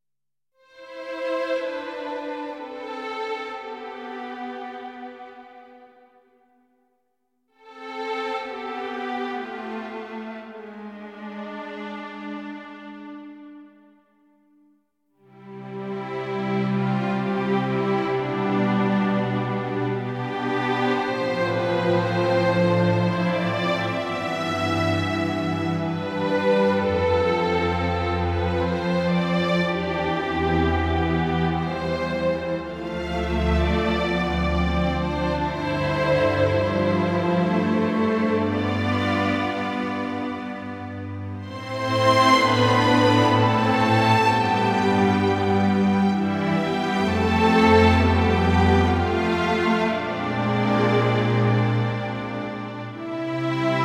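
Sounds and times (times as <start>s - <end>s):
strings: 0.6s - 6.2s, 7.6s - 13.9s, 15.3s - 53.8s.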